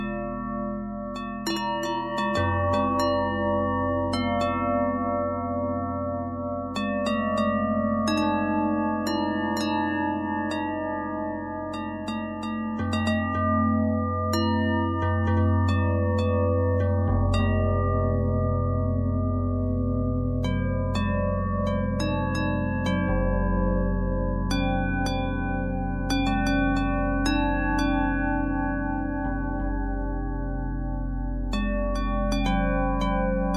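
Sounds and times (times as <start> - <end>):
bells with harmonic twist: 0.0 - 33.5.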